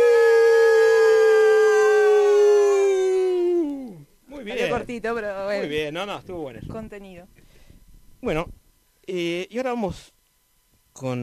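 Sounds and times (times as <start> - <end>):
group of people howling in imitation of a wolf: 0.0 - 4.1
speech: 4.9 - 7.4, 8.2 - 10.2, 11.0 - 11.2.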